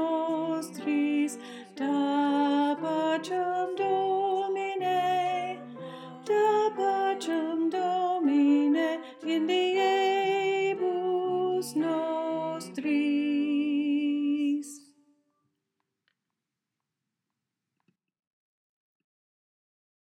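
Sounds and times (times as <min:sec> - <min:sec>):
alto choir singing: 0:00.0 - 0:14.8.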